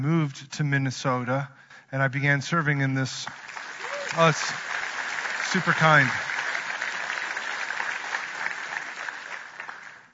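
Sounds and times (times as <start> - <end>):
speech: 0.0 - 4.7, 5.5 - 6.3
short audience applause: 3.2 - 10.1.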